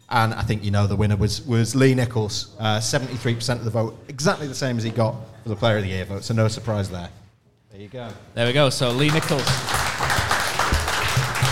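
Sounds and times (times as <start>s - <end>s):
speech: 0.1s - 9.8s
crowd applause: 8.8s - 11.5s.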